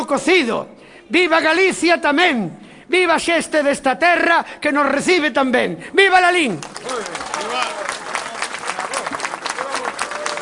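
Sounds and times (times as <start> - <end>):
speech: 0.1 - 8.0
crowd applause: 6.6 - 10.4
raised voices cheering: 6.8 - 10.4.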